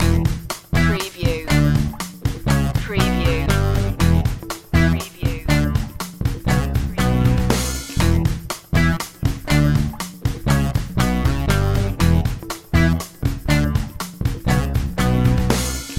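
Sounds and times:
funky strut music loop: 0.0s - 15.9s.

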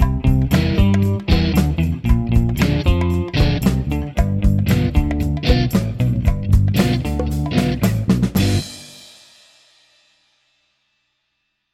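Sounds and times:
children's soft rock underscore: 0.0s - 9.1s.

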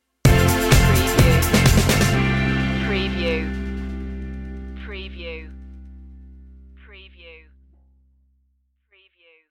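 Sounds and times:
edgy driving pop track stinger: 0.3s - 5.5s
big synth pads: 0.3s - 6.9s
angular guitar: 0.3s - 7.3s.

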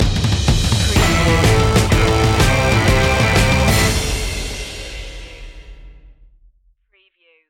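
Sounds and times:
Absynth synthesizer stinger: 0.8s - 5.6s.

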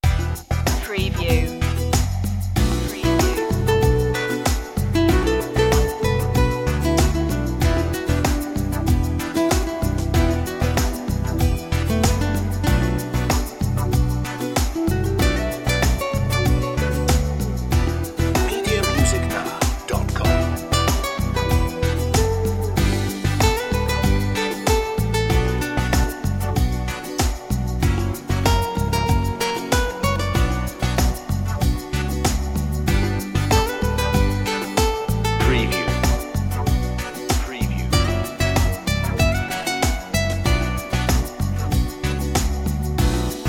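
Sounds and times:
rhythm: 0.0s - 43.4s.

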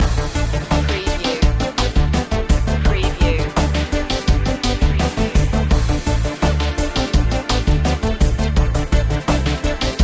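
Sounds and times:
music loop: 0.0s - 10.0s.

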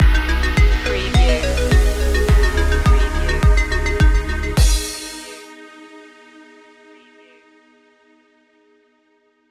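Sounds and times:
stinger: 0.0s - 6.0s.

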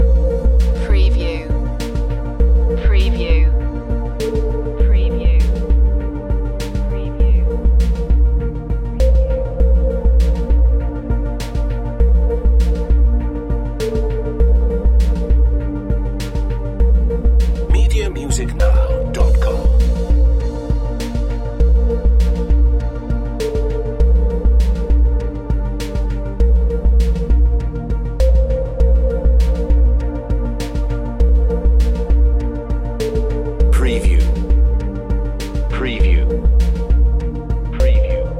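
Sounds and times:
space age music loop: 0.0s - 38.3s.

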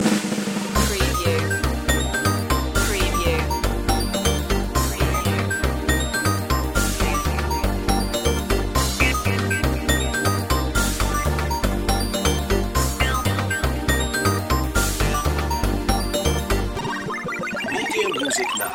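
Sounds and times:
fast 8-bit music: 0.8s - 18.7s.

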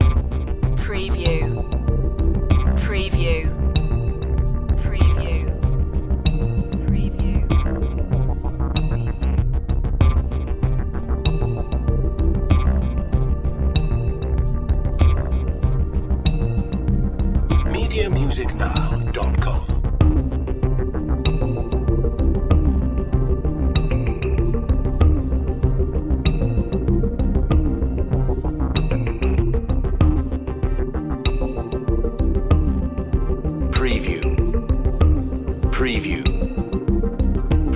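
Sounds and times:
robotic action music loop: 0.0s - 37.7s.

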